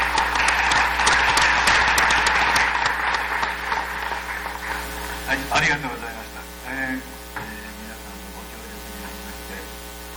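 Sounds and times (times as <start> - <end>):
approving applause from a group: 0.0 - 5.9
speech: 5.6 - 6.1.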